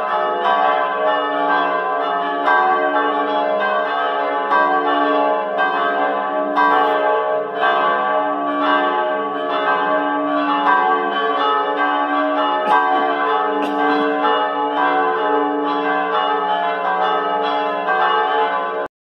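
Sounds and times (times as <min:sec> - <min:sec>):
church bells ringing: 0:00.0 - 0:18.9.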